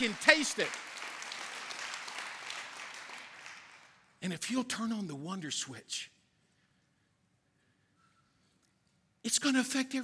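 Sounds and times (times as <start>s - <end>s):
speech: 0.0s - 0.9s, 4.2s - 6.2s, 9.2s - 10.0s
crowd applause: 0.0s - 4.0s.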